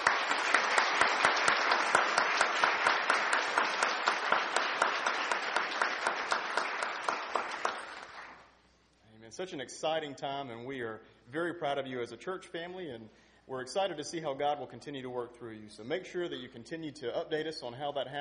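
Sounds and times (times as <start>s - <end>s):
audience applauding graduates: 0.0s - 8.5s
speech: 9.4s - 18.1s.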